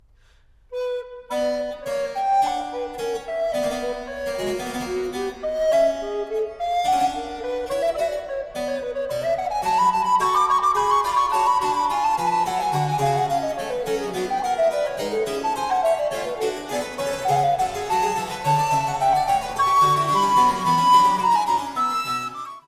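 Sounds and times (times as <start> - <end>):
presto flute sonata: 0.7 - 22.6.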